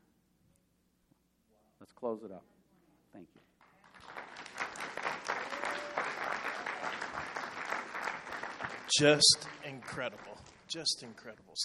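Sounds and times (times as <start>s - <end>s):
speech: 1.8s - 3.6s, 8.9s - 11.6s
audience hand clapping: 3.6s - 11.3s.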